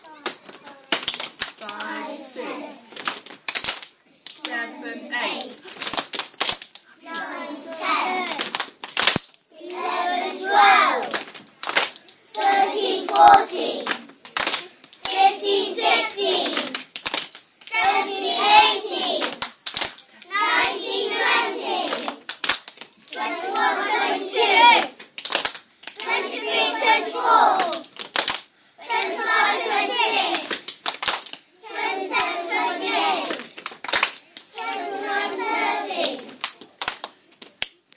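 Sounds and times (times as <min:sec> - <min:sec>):
year 1 maths counting song: 0:00.0 - 0:03.0, 0:04.2 - 0:05.8, 0:06.9 - 0:08.6, 0:09.5 - 0:11.3, 0:12.2 - 0:16.9, 0:17.6 - 0:19.6, 0:20.2 - 0:22.3, 0:23.1 - 0:25.0, 0:25.9 - 0:27.9, 0:28.8 - 0:30.9, 0:31.5 - 0:33.6, 0:34.3 - 0:36.7
rhythmic clapping: 0:00.0 - 0:37.9.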